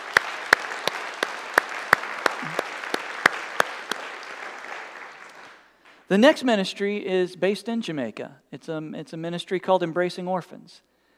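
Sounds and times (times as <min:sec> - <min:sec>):
audience applause: 0:00.0 - 0:06.1
speech: 0:06.1 - 0:10.9.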